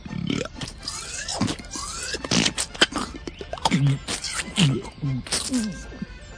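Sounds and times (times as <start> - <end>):
man imitating a hippopotamus with his mouth: 1.2 - 5.9.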